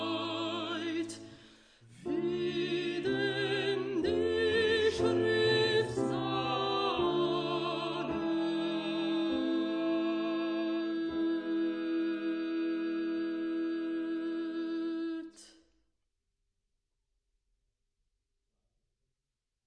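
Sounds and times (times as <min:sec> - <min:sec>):
soprano singing a chorale: 0:00.0 - 0:15.5.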